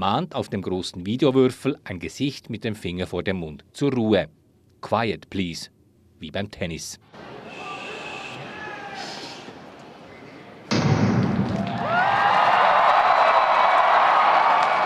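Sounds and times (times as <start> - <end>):
speech: 0.0 - 7.7
subdued arena crowd murmur: 7.1 - 10.7
arena crowd roaring: 7.2 - 10.7, 11.4 - 14.8
shrill crowd whistles: 7.4 - 10.6.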